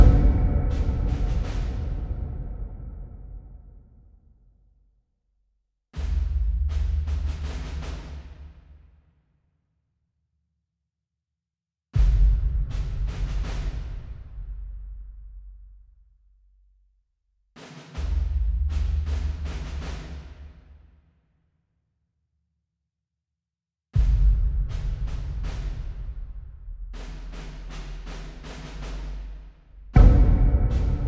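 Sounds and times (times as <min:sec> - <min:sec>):
militant drums: 0:00.0 - 0:03.6, 0:06.0 - 0:08.6, 0:12.0 - 0:14.6, 0:17.6 - 0:20.7, 0:24.0 - 0:31.0.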